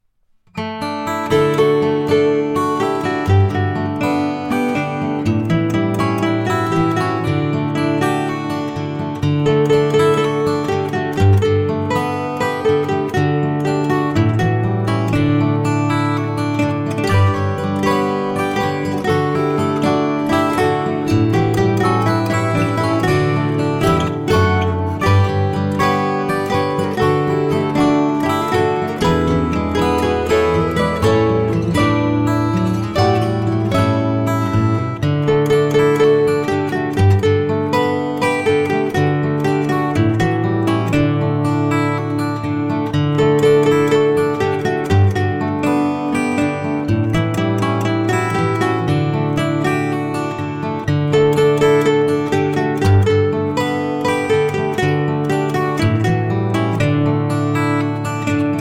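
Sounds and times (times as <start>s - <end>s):
instrumental guitar without words: 0.0s - 58.6s.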